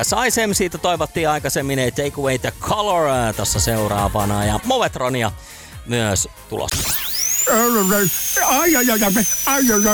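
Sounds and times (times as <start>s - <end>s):
speech: 0.0s - 9.9s
electric drill whirring: 6.7s - 9.9s.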